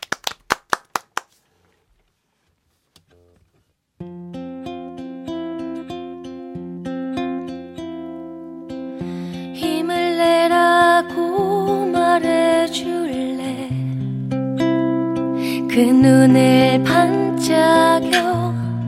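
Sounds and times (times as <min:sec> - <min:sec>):
audience clapping: 0:00.0 - 0:01.4
acoustic music with strummed chords: 0:04.0 - 0:18.8
speech: 0:15.8 - 0:18.5.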